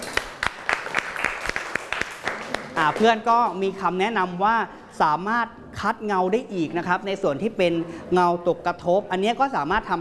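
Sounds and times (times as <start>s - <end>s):
classroom of students clapping for a classmate: 0.0s - 3.1s
speech: 2.8s - 9.9s.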